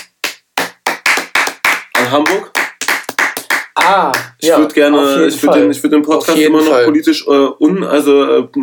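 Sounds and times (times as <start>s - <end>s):
short round of hand clapping: 0.0s - 4.6s
speech: 2.1s - 2.6s, 3.8s - 8.6s.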